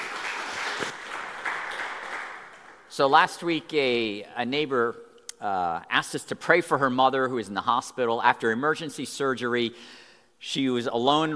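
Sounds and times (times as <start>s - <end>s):
audience applauding a speaker at a morning gathering: 0.0s - 2.8s
speech: 3.0s - 11.3s.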